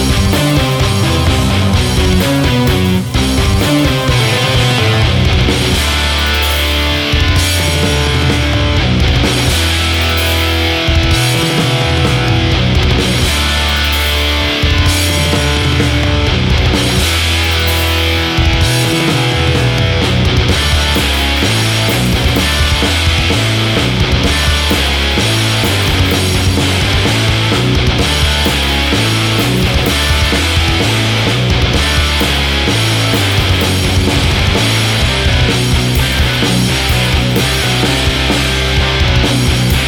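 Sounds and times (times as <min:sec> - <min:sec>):
neorock background music: 0:00.0 - 0:39.8.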